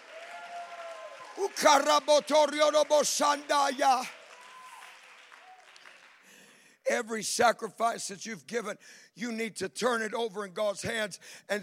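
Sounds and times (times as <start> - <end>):
audience shouting praise and cheering: 0.0 - 5.7
clapping: 0.0 - 6.6
speech: 1.4 - 4.2, 6.9 - 11.6.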